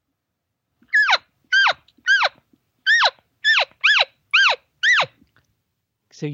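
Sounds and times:
nervous elk calf chirping: 0.9 - 5.2.

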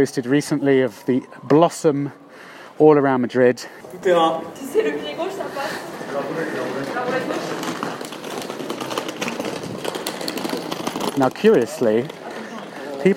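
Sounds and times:
speech: 0.0 - 7.5, 11.2 - 12.2
wheeled carry-on suitcase towed along: 3.8 - 13.1.

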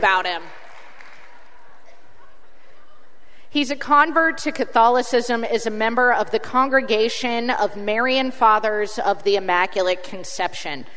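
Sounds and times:
speech: 0.0 - 0.6, 3.5 - 10.9
audience applause: 0.5 - 1.7.

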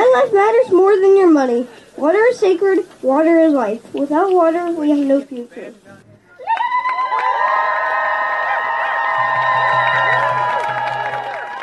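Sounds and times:
speech: 0.1 - 6.0
crowd applause and cheering: 6.4 - 11.6.

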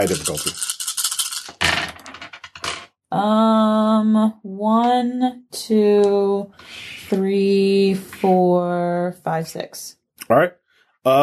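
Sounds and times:
speech: 0.0 - 0.7, 3.2 - 11.2
dice being rolled: 0.0 - 2.9.

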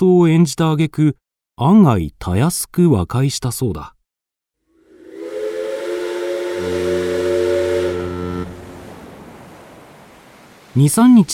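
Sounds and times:
speech: 0.0 - 4.0, 10.8 - 11.3
loud sustained steam train whistle: 4.8 - 9.1.

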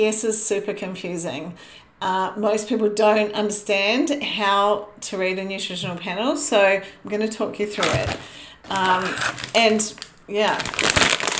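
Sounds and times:
speech: 0.0 - 11.3
crinkling packet of pork crackles: 7.8 - 11.3.

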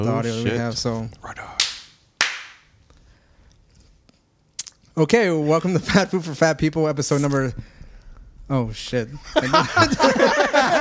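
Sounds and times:
speech: 0.0 - 1.4, 5.0 - 7.8, 8.5 - 10.8
hand claps for syncing podcast audio: 1.6 - 2.7
laughter: 9.2 - 10.8.

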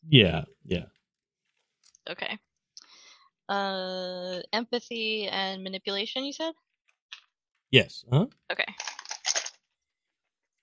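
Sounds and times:
speech: 0.1 - 1.0, 2.1 - 2.4, 3.5 - 8.9
dice rolling and clattering: 8.7 - 9.6.

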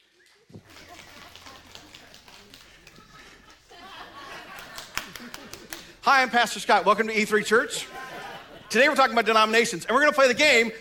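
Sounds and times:
crowd applause: 0.0 - 6.0
laughter: 0.5 - 6.4, 7.3 - 9.6
speech: 6.1 - 8.0, 8.7 - 10.7.

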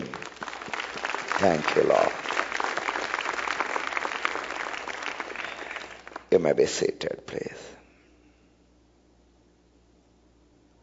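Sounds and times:
audience clapping: 0.0 - 6.7
speech: 1.4 - 2.3, 6.3 - 7.8.

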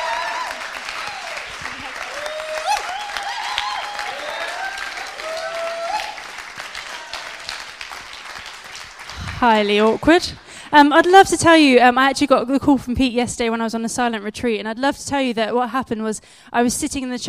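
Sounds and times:
whoops and cheering voices: 0.0 - 7.6
audience applause: 0.0 - 10.6
speech: 9.4 - 17.2.

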